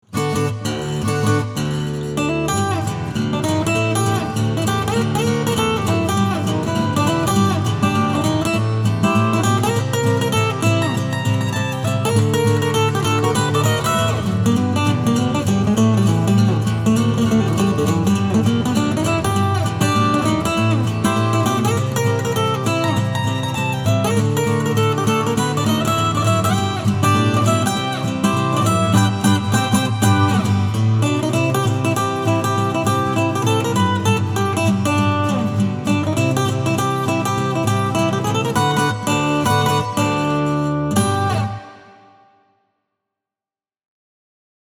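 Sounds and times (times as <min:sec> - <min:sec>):
acoustic music: 0:00.1 - 0:42.3.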